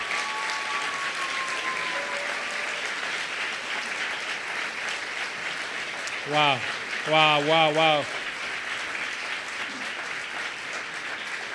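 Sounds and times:
audience applause: 0:00.0 - 0:11.5
faint whistle-like tone: 0:00.2 - 0:02.8
speech: 0:06.3 - 0:08.2.

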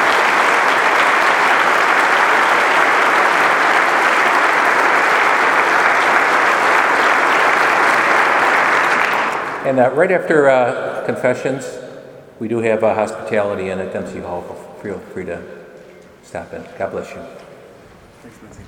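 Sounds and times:
audience applause: 0:00.0 - 0:10.0
speech: 0:09.7 - 0:11.8, 0:12.4 - 0:15.6, 0:16.2 - 0:17.5, 0:18.2 - 0:18.6.

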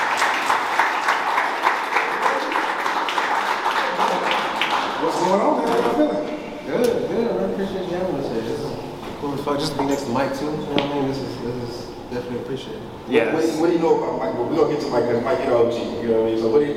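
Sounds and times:
audience applause: 0:00.0 - 0:05.4
speech: 0:05.2 - 0:07.0, 0:07.6 - 0:16.7.

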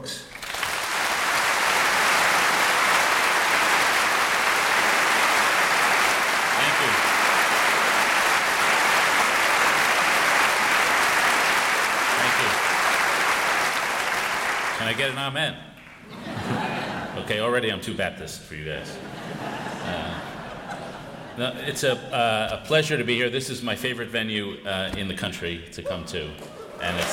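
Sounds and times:
speech: 0:00.0 - 0:00.3, 0:14.9 - 0:15.7, 0:17.3 - 0:19.2, 0:21.4 - 0:27.1
large crowd applause welcoming David Brooks at the Westminster Town Hall Forum: 0:00.0 - 0:15.1, 0:26.8 - 0:27.1
laughter: 0:16.0 - 0:17.4, 0:18.9 - 0:22.0, 0:26.4 - 0:27.1.

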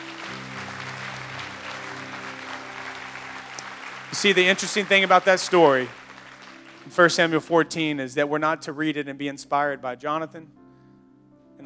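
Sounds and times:
audience clapping hands: 0:00.0 - 0:07.9
speech: 0:04.1 - 0:06.0, 0:06.9 - 0:10.6.

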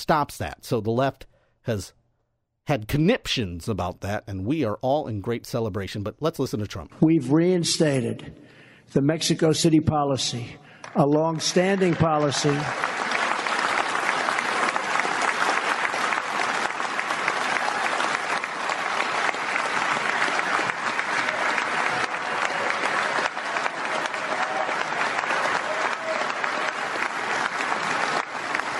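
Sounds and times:
speech: 0:00.0 - 0:02.0, 0:02.7 - 0:13.0
crowd applause: 0:10.8 - 0:28.7.

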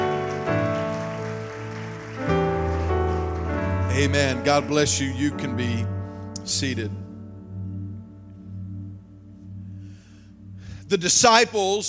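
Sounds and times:
audience clapping hands: 0:00.0 - 0:05.0
sustained musical chords: 0:00.0 - 0:11.5
speech: 0:04.0 - 0:05.9, 0:06.5 - 0:07.0, 0:10.9 - 0:11.8.

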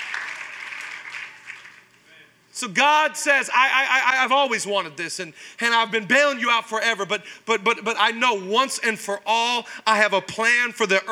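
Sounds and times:
audience applause: 0:00.0 - 0:01.9
speech: 0:02.6 - 0:11.1.

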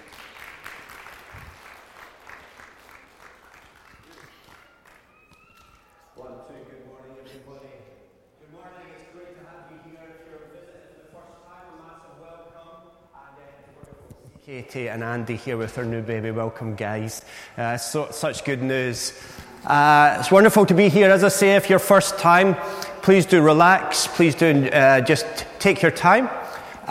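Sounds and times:
audience applause welcoming a pastor to the stage: 0:00.0 - 0:06.1
speech: 0:14.5 - 0:26.8.

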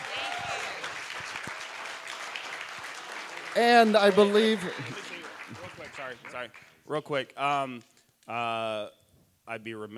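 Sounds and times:
audience applause: 0:00.0 - 0:06.7
speech: 0:03.6 - 0:05.1, 0:06.0 - 0:09.9.

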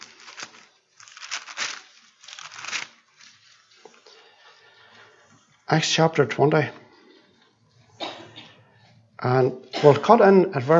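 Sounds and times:
Bible pages rustling as they are turned to Acts chapter 20: 0:00.0 - 0:04.8
speech: 0:05.7 - 0:06.8, 0:09.2 - 0:10.7.

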